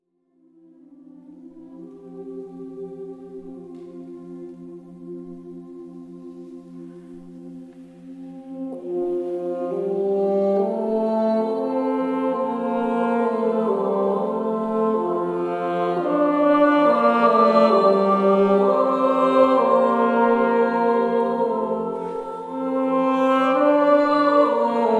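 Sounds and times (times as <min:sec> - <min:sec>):
musical improvisation: 0:00.7 - 0:24.9.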